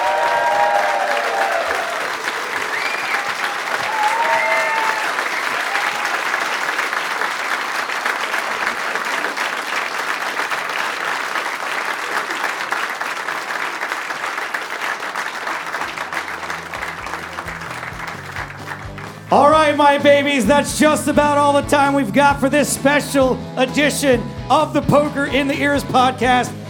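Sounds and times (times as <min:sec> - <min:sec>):
audience applause: 0:00.0 - 0:21.3
speech: 0:20.0 - 0:26.6.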